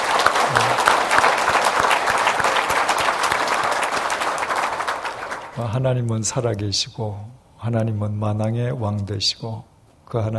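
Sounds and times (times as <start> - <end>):
crowd applauding: 0.0 - 5.7
speech: 5.6 - 10.3.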